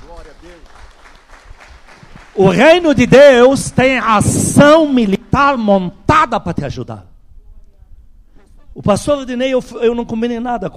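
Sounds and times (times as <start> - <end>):
audience applause: 0.0 - 4.1
speech: 2.4 - 7.1, 8.8 - 10.7.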